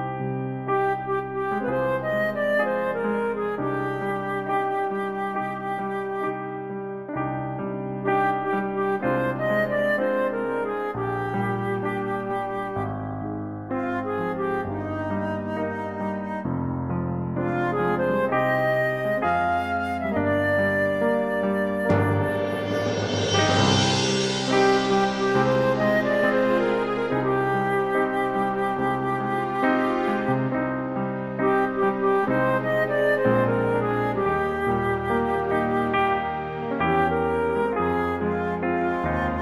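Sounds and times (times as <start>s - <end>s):
flute playing in C minor: 0.2s - 39.4s.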